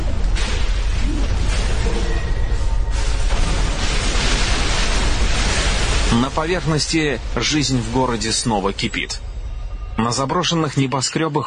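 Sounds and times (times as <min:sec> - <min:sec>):
rumble of collapsing steel and concrete: 0:00.0 - 0:11.0
speech: 0:06.2 - 0:09.3, 0:10.0 - 0:11.4.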